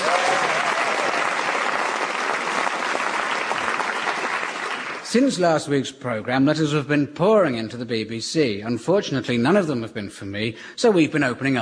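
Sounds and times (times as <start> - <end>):
studio audience applause welcoming guests: 0.0 - 5.3
speech: 5.1 - 11.6.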